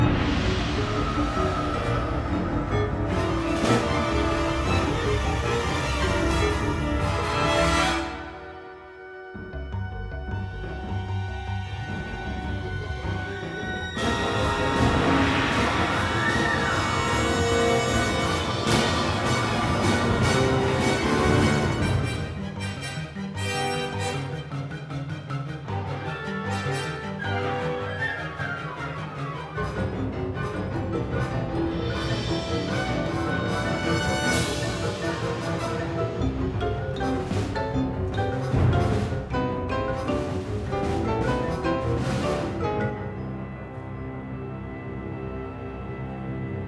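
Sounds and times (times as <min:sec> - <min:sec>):
roof fight action music: 0:00.0 - 0:46.6.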